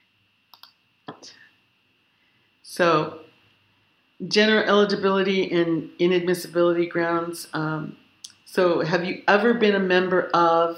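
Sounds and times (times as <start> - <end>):
computer mouse clicking a checkbox on a form: 0.5 - 0.8
speech: 2.8 - 3.2, 4.2 - 10.7.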